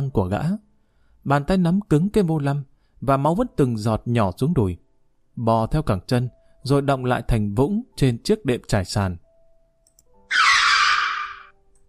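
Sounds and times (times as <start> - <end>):
speech: 0.1 - 4.8, 5.4 - 9.2
car tires screeching on road surface: 10.3 - 11.5.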